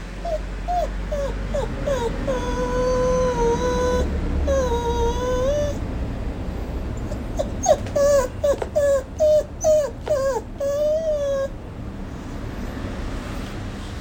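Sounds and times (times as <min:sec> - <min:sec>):
Hokkaido dog whimpering: 0:00.0 - 0:05.9, 0:06.9 - 0:12.5
low background rumble: 0:00.0 - 0:12.8.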